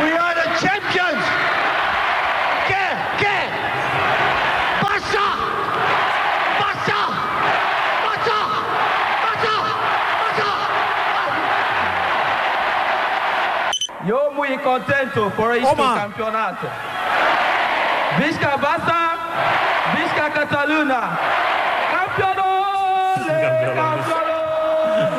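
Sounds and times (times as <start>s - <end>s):
crowd celebrating FC Barcelona's 1998 league title in Plaça Sant Jaume: 0.0s - 25.1s
speech: 14.8s - 16.9s, 18.1s - 22.5s, 23.3s - 24.2s.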